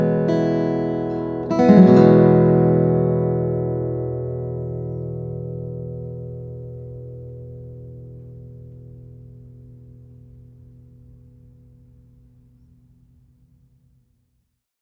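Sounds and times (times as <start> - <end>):
2004 sugar pine flattop steel string guitars: 0.0 - 8.9.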